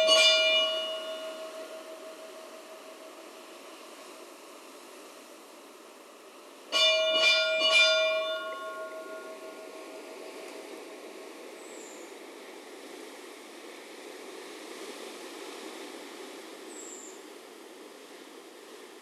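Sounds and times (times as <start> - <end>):
church bells of Stadarkirkja in Reykholt: 0.0 - 3.6, 6.7 - 11.2.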